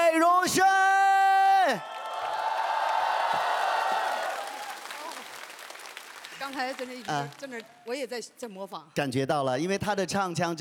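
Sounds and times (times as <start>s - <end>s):
shouts and whoops: 0.5s - 5.2s
speech: 1.7s - 1.9s, 6.7s - 10.6s
audience applause: 1.8s - 7.8s.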